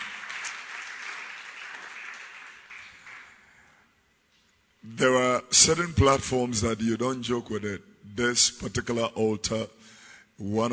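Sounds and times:
audience applause: 0.0 - 3.6
speech: 4.9 - 9.8, 10.4 - 10.7.

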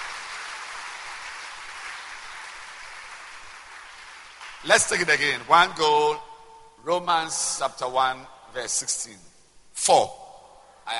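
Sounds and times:
audience clapping: 0.0 - 5.7
speech: 4.6 - 10.2.

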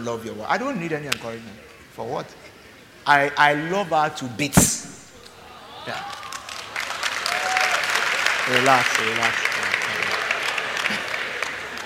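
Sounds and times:
speech: 0.0 - 2.5, 3.1 - 4.9, 5.8 - 6.2, 8.5 - 9.7
audience applause: 5.9 - 11.8
laughter: 9.4 - 11.8.

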